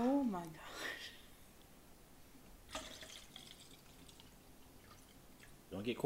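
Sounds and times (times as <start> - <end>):
speech: 0.0 - 0.9, 5.7 - 6.0
drink poured into a tall glass: 2.7 - 5.6.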